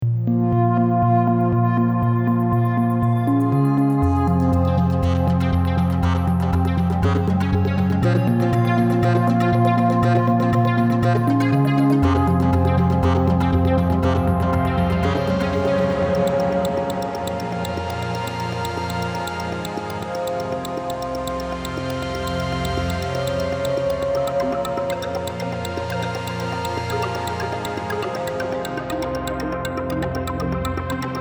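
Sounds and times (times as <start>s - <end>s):
hyper synths: 0.0s - 31.1s.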